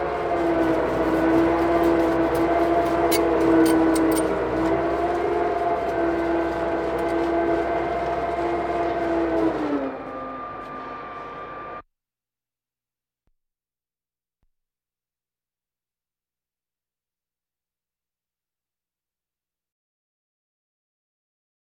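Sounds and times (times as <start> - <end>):
military vehicles: 0.0 - 11.8.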